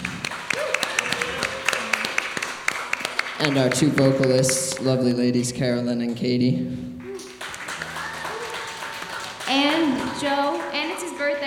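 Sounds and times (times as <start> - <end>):
audience applause: 0.0 - 4.8, 7.2 - 11.4
speech: 3.4 - 7.0, 9.5 - 11.4.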